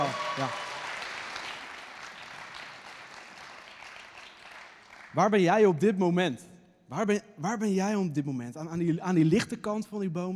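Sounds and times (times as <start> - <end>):
audience applause: 0.0 - 5.2
speech: 0.4 - 0.7, 5.2 - 10.3.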